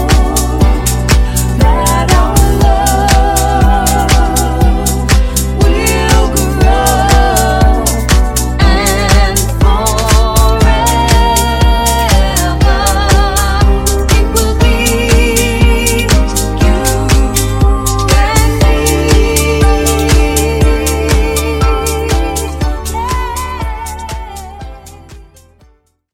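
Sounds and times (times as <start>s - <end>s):
funk bootleg music: 0.0s - 26.1s.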